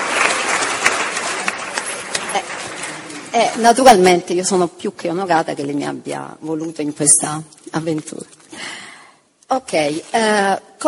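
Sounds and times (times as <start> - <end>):
audience applause: 0.0 - 3.6
speech: 3.3 - 8.4, 9.5 - 10.8.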